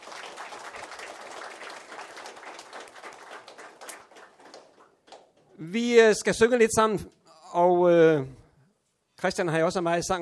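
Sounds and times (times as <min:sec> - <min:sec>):
audience applause: 0:00.0 - 0:05.4
speech: 0:05.6 - 0:08.4, 0:09.2 - 0:10.2.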